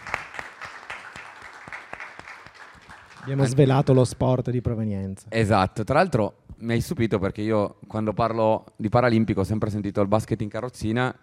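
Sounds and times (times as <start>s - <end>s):
audience applause: 0.0s - 3.8s
speech: 3.2s - 11.2s.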